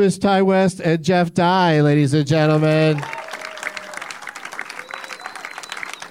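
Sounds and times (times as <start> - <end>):
speech: 0.0 - 3.2
applause from a small audience welcoming guests onto a comedy stage: 2.6 - 6.0.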